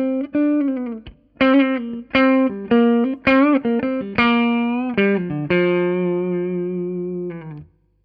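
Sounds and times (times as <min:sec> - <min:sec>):
clean electric guitar on neck humbucker pickup: 0:00.0 - 0:07.9.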